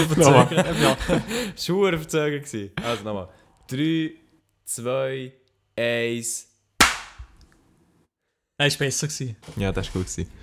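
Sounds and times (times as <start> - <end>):
laughter: 0.0 - 1.8
speech: 0.0 - 6.5, 8.6 - 10.4
hand clap for audio sync: 6.8 - 7.4.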